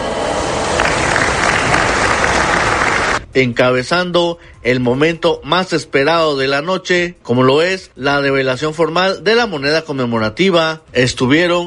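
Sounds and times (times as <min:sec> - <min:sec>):
audience applause: 0:00.4 - 0:03.2
speech: 0:03.4 - 0:11.6.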